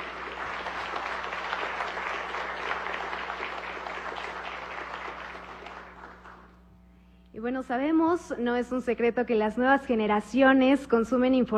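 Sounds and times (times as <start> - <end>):
applause: 0.0 - 6.6
speech: 7.4 - 11.5.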